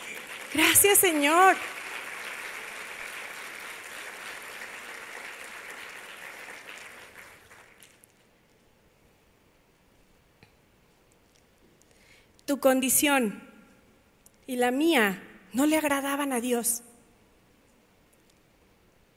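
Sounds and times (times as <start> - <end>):
applause: 0.0 - 8.2
speech: 0.6 - 1.7, 12.5 - 13.5, 14.5 - 16.9.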